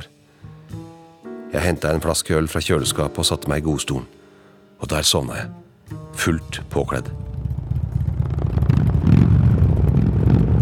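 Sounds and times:
speech: 1.5 - 4.2, 4.8 - 7.3
deep rumbling: 6.0 - 10.6.

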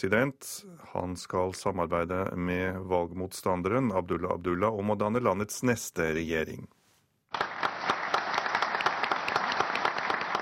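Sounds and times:
speech: 0.0 - 7.7
crowd applause: 7.3 - 10.4.

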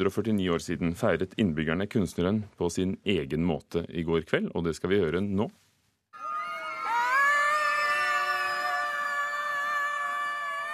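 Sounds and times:
speech: 0.0 - 5.6
children and adults screaming at full volume: 6.2 - 10.7.

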